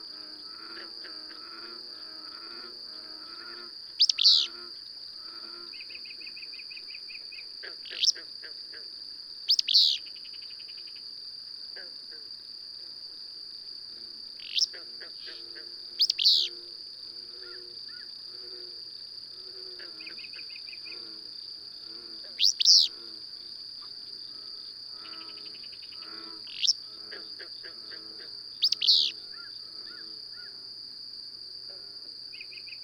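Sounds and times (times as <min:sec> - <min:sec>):
insect hum: 0:00.0 - 0:32.8
bird chirping: 0:04.0 - 0:04.5, 0:09.5 - 0:10.0, 0:16.0 - 0:16.5, 0:22.4 - 0:22.9, 0:28.6 - 0:30.1.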